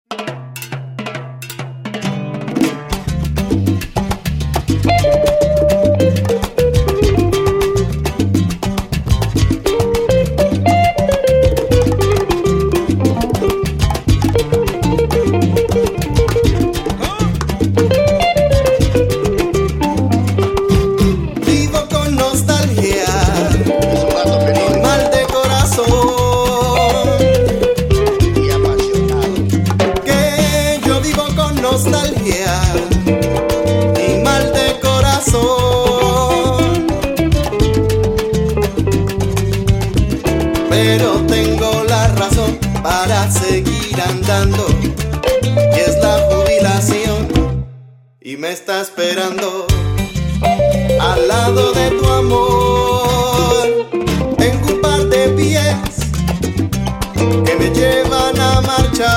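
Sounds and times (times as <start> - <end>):
latin blues music: 0.0 - 59.1.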